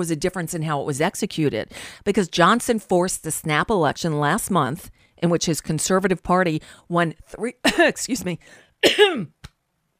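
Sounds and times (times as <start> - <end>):
speech: 0.0 - 9.4
person clearing throat: 8.8 - 9.4.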